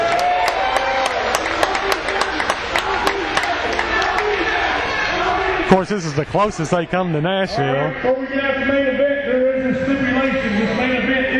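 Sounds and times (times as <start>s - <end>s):
wrestling crowd clapping and cheering: 0.0s - 5.2s
shouts and murmur of voices in a large room: 0.0s - 11.3s
speech: 5.7s - 11.3s.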